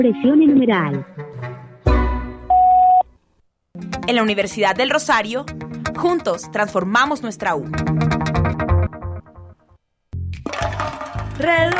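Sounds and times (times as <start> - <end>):
speech: 0.0 - 1.5, 3.8 - 8.4, 11.4 - 11.7
voicemail beep on a university's suggestion-box phone line: 2.5 - 3.1.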